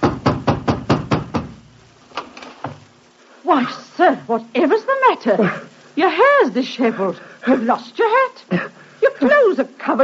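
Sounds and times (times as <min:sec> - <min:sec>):
heavy hammering knocks on a landlady's door: 0:00.0 - 0:01.6
speech: 0:03.5 - 0:10.0.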